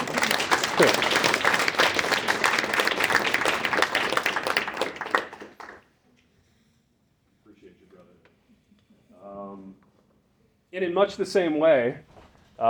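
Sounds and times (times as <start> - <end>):
people clapping: 0.0 - 5.9
speech: 0.8 - 1.1, 11.0 - 12.6.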